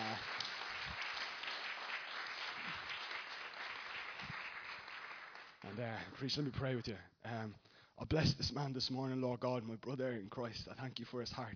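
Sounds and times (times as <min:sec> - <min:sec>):
applause: 0:00.0 - 0:06.2
speech: 0:05.6 - 0:11.5.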